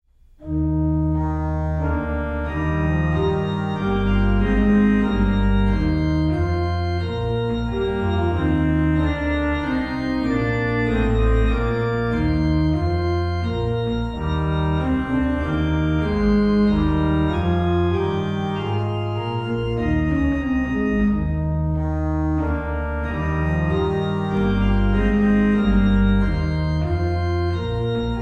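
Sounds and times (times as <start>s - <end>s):
organ chorale prelude: 0.3s - 28.2s.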